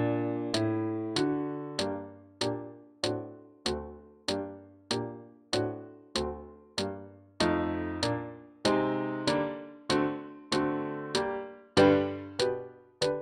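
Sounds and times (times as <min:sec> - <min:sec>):
instrumental accompaniment for clarinet solo: 0:00.0 - 0:13.1
click track: 0:00.5 - 0:09.4, 0:12.4 - 0:13.1.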